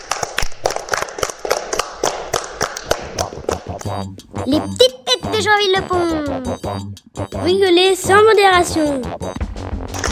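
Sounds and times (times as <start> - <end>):
small group applause: 0.0 - 3.2
speech: 3.9 - 9.6.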